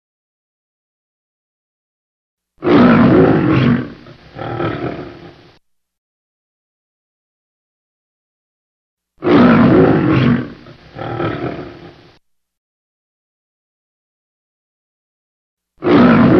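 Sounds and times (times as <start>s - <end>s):
lion roaring: 2.6s - 5.6s, 9.2s - 12.2s, 15.8s - 16.3s.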